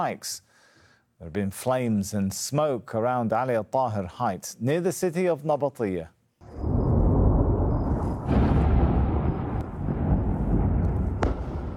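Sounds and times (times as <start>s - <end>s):
speech: 0.0s - 0.5s, 1.2s - 6.2s
series of explosions after airstrikes: 6.4s - 11.7s
sharp crack: 7.9s - 11.7s.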